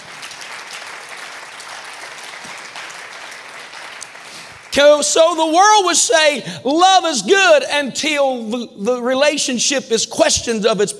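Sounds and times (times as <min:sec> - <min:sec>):
audience clapping hands: 0:00.0 - 0:05.4
speech: 0:04.7 - 0:10.9.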